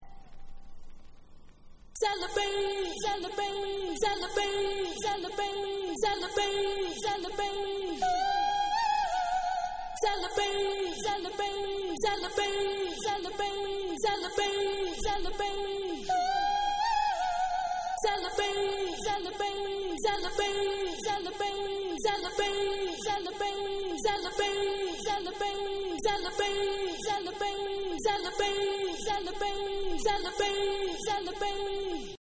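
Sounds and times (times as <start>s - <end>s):
a cappella singing: 2.0s - 32.2s.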